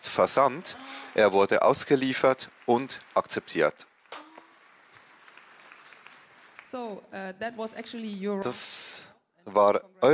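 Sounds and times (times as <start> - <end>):
audience applause: 0.0 - 7.0
speech: 0.2 - 3.9, 6.7 - 10.1.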